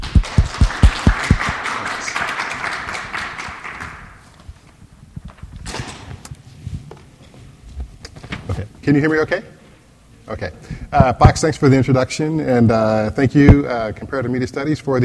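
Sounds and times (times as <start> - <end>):
audience applause: 0.0 - 4.4
speech: 8.9 - 9.5, 10.3 - 15.0.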